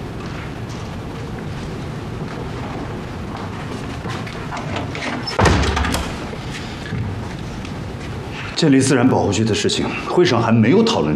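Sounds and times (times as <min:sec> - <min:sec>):
door shut with a heavy thud: 0:05.2 - 0:06.3
people talking: 0:08.6 - 0:11.1.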